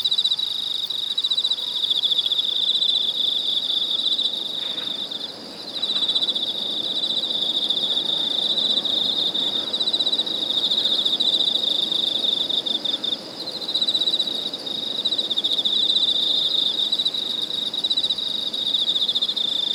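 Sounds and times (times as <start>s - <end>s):
cicadas buzzing in Weinan China: 0.0s - 19.7s.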